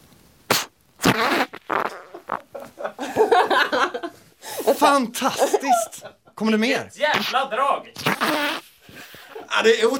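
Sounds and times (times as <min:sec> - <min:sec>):
vaginal fart blown into a microphone: 0:00.5 - 0:02.8, 0:07.1 - 0:09.2
speech: 0:04.7 - 0:08.6, 0:09.6 - 0:09.9.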